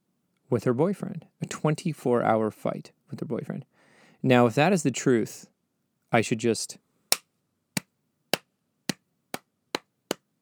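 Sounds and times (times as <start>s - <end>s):
speech: 0.5s - 5.5s, 6.1s - 6.8s
slow clap: 7.1s - 10.4s.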